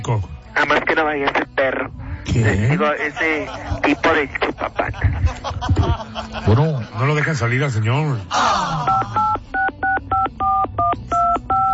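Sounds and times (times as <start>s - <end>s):
speech: 0.0s - 9.4s
laughter: 2.8s - 7.1s
telephone number being dialed with touch tones: 8.9s - 11.7s.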